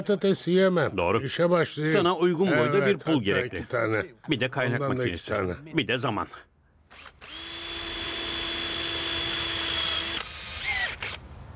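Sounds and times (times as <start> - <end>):
speech: 0.0 - 7.5
electric drill whirring and dying: 6.9 - 11.2.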